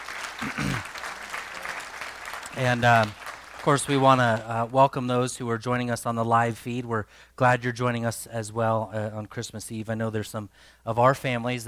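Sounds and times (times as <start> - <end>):
audience applause: 0.0 - 4.5
speech: 2.6 - 11.6.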